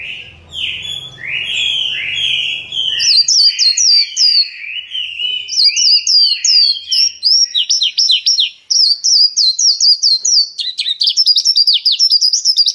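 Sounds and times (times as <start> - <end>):
bird song of high rapid whistled notes: 0.0 - 12.7.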